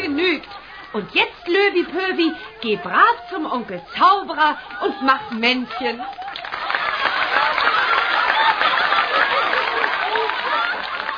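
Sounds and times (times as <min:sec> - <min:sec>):
crowd voices and cheers: 0:00.0 - 0:11.1
laughter: 0:00.0 - 0:11.1
speech: 0:00.9 - 0:06.3
thunderous applause from a large crowd: 0:06.0 - 0:11.1.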